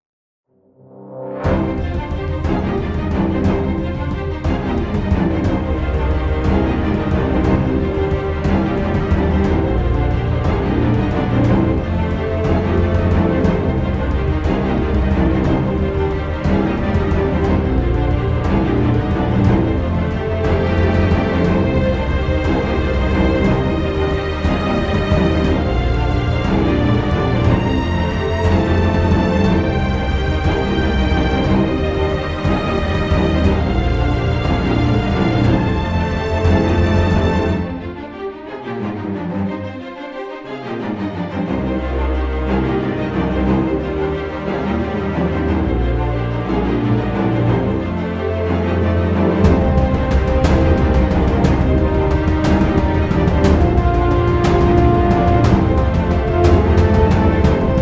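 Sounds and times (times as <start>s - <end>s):
dramatic music: 0.6s - 57.7s.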